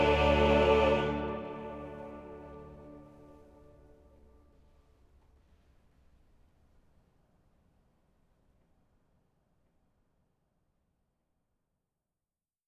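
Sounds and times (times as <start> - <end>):
choral cantata: 0.0 - 3.7.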